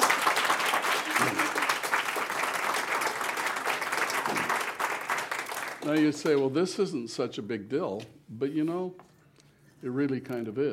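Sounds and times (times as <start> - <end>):
crowd applauding the inventor of a boot design: 0.0 - 6.4
speech: 5.8 - 9.1, 9.8 - 10.7.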